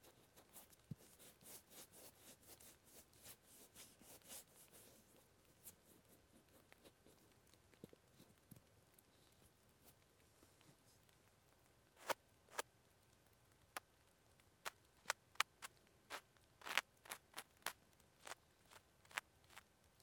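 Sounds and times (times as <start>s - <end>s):
light rain: 7.2s - 15.0s
simple ear cleaning: 15.1s - 19.6s.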